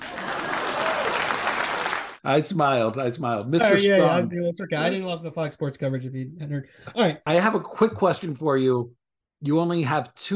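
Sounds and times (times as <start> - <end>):
crowd applause: 0.0 - 2.2
speech: 2.2 - 10.3.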